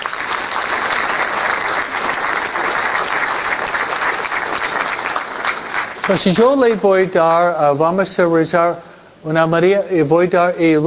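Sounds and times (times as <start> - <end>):
audience applause: 0.0 - 6.6
speech: 6.1 - 10.8.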